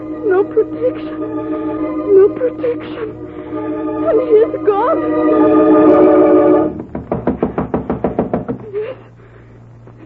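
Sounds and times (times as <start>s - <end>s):
speech: 0.4s - 6.6s
knocking on a door: 6.8s - 8.6s.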